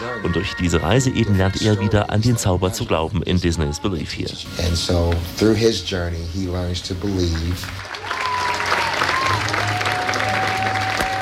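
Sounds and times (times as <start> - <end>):
speech: 0.2 - 8.2
theater audience applause: 7.0 - 11.1.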